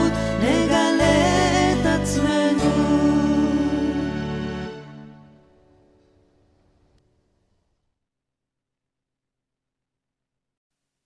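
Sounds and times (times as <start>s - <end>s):
song in Hebrew: 0.0s - 6.4s.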